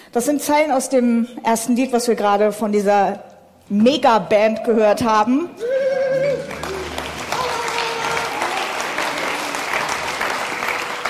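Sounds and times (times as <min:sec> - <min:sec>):
speech: 0:00.1 - 0:05.7
audience applause: 0:06.3 - 0:11.0.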